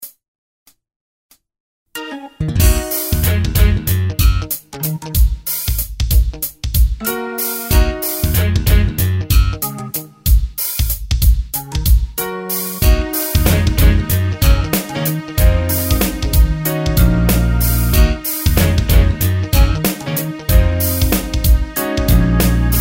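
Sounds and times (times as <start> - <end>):
backing track in E flat minor without saxophone: 2.0 - 22.7.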